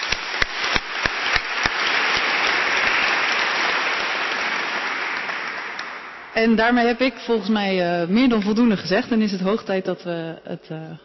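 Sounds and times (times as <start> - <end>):
applause: 0.0 - 7.0
speech: 6.4 - 11.0.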